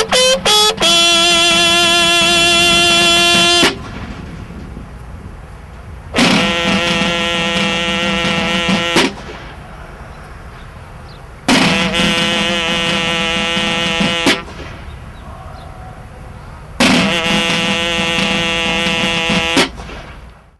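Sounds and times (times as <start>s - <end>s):
military bugle call: 0.0s - 3.8s, 6.2s - 9.4s, 11.5s - 14.6s, 16.8s - 19.8s.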